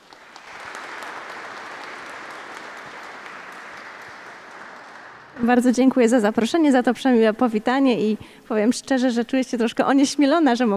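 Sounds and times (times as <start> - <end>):
audience clapping: 0.0 - 5.6
speech: 5.4 - 10.7.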